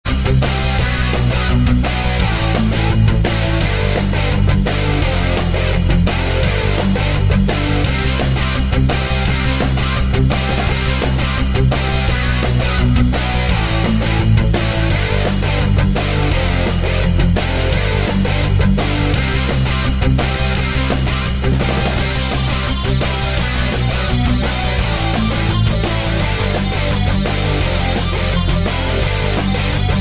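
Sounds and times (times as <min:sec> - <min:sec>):
gritty punk music: 0:00.0 - 0:29.9.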